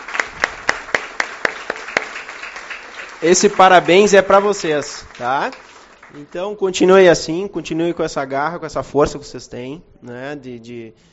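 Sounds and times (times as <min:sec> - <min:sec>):
crisp rhythmic audience clapping: 0:00.0 - 0:06.4
speech: 0:03.2 - 0:11.1.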